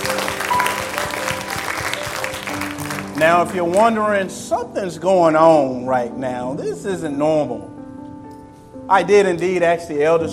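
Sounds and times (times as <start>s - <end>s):
audience applauding, hand clap of praise: 0.0s - 3.9s
speech: 3.2s - 7.8s, 8.9s - 10.3s.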